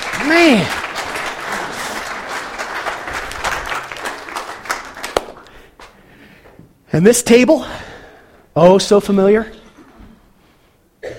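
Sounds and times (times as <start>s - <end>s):
applause: 0.0s - 5.6s
speech: 0.2s - 0.8s, 7.0s - 7.9s, 8.6s - 9.6s.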